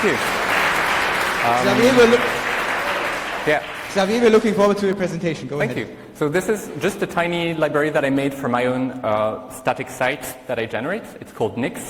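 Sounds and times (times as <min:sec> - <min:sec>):
speech: 0:00.0 - 0:00.4, 0:01.4 - 0:02.4, 0:03.4 - 0:11.8
audience applause: 0:00.0 - 0:04.9.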